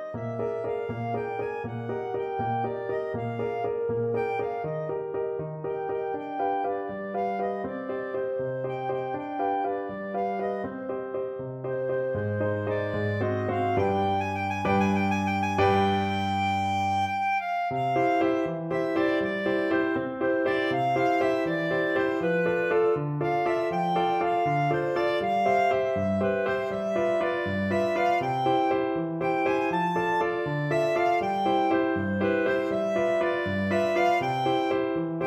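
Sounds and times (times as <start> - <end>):
clarinet: 0.0 - 35.2.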